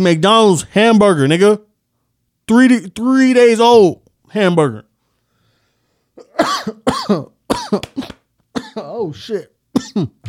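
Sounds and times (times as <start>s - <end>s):
speech: 0.0s - 1.7s, 2.5s - 4.9s, 6.4s - 8.2s, 8.8s - 10.2s
man coughing: 6.2s - 10.2s.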